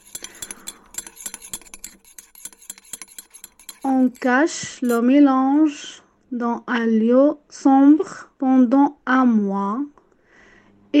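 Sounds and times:
utensil clinking against a container mixing garlic with oil: 0:00.0 - 0:05.0
speech: 0:03.8 - 0:10.0.

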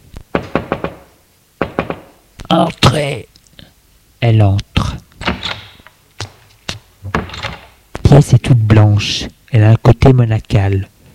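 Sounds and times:
knocking on a bedroom door: 0:00.3 - 0:02.1
speech: 0:02.5 - 0:03.3, 0:04.2 - 0:05.0, 0:08.1 - 0:10.9.

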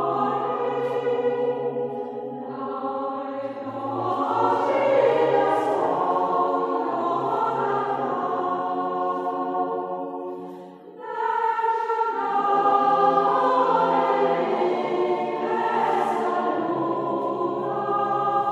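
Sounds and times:
choir singing: 0:00.0 - 0:18.4.

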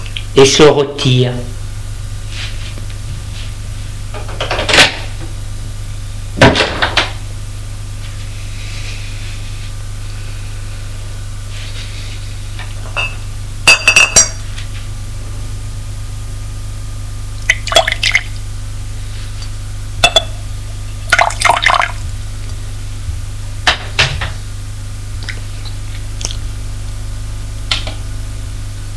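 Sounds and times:
low hum: 0:00.0 - 0:28.9
speech: 0:00.4 - 0:01.5
glass clinking: 0:13.0 - 0:14.4
bourbon poured into a glass: 0:17.5 - 0:18.3, 0:21.1 - 0:22.0.

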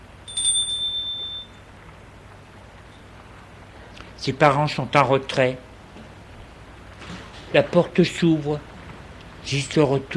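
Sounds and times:
doorbell ringing at a door: 0:00.2 - 0:01.7
speech: 0:04.2 - 0:05.7, 0:07.5 - 0:08.7, 0:09.4 - 0:10.1.

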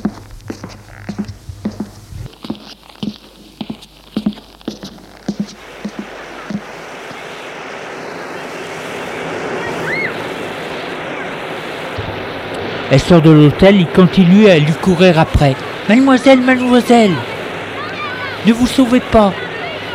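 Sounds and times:
soft thuds: 0:00.0 - 0:06.7
waves washing onto a beach: 0:01.8 - 0:19.9
speech: 0:12.9 - 0:17.3, 0:18.4 - 0:19.4.

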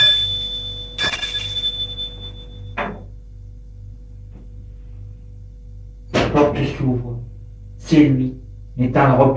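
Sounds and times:
doorbell ringing: 0:00.0 - 0:02.8
low steady hum: 0:00.0 - 0:09.3
speech: 0:06.6 - 0:07.1, 0:07.9 - 0:09.3.

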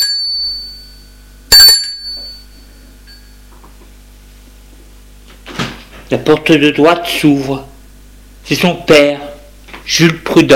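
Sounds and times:
doorbell ringing: 0:00.0 - 0:03.4
speech: 0:06.1 - 0:07.7, 0:08.5 - 0:09.3, 0:09.9 - 0:10.5.

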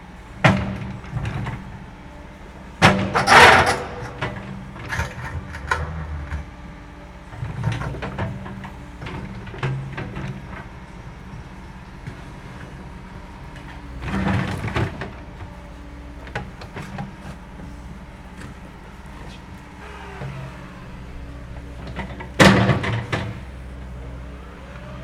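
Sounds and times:
backhoe loader: 0:00.0 - 0:25.0.

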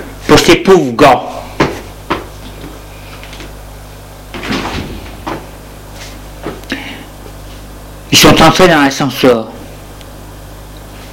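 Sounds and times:
speech: 0:00.3 - 0:01.4, 0:08.4 - 0:09.6
door opening: 0:04.4 - 0:05.4.

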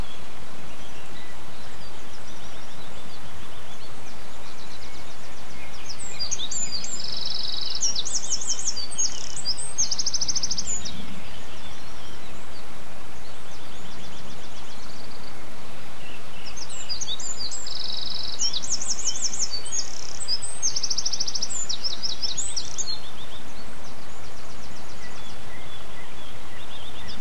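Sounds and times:
bird song with rapid high ticking trills: 0:00.0 - 0:27.1.

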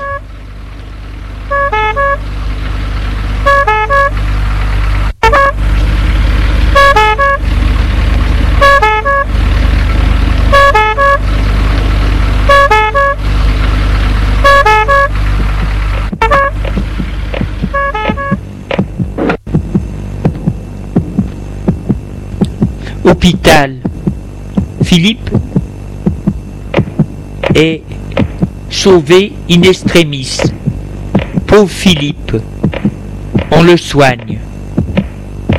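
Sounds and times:
fire engine two-tone horn: 0:00.0 - 0:00.3, 0:01.4 - 0:02.3, 0:03.4 - 0:04.2, 0:05.2 - 0:05.8, 0:06.6 - 0:07.6, 0:08.5 - 0:09.5, 0:10.4 - 0:11.4, 0:12.4 - 0:13.4, 0:14.3 - 0:15.2, 0:16.2 - 0:16.7, 0:17.7 - 0:18.4
fire engine engine rumble: 0:00.0 - 0:35.5
scattered clicks: 0:22.4 - 0:22.6, 0:26.7 - 0:28.5, 0:31.2 - 0:35.5
speech: 0:23.2 - 0:23.8, 0:24.9 - 0:25.6, 0:27.6 - 0:27.9, 0:28.8 - 0:30.6, 0:31.6 - 0:32.5, 0:33.6 - 0:34.3.

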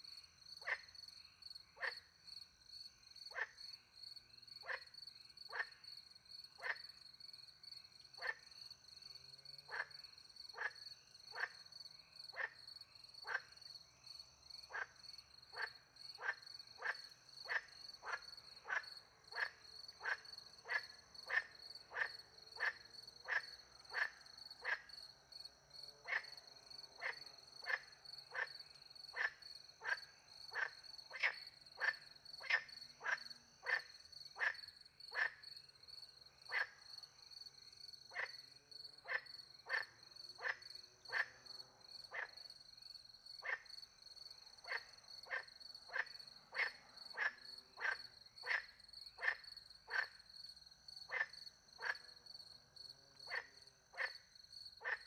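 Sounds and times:
crickets chirping: 0:00.0 - 0:55.0
frog croaking: 0:00.6 - 0:00.9, 0:01.8 - 0:02.1, 0:03.3 - 0:03.6, 0:04.6 - 0:04.9, 0:05.5 - 0:05.8, 0:06.6 - 0:06.8, 0:08.2 - 0:08.4, 0:09.7 - 0:11.7, 0:12.3 - 0:13.6, 0:14.7 - 0:25.0, 0:26.0 - 0:35.4, 0:36.4 - 0:37.0, 0:38.1 - 0:42.5, 0:43.4 - 0:43.8, 0:44.4 - 0:50.3, 0:51.0 - 0:52.3, 0:53.2 - 0:55.0.

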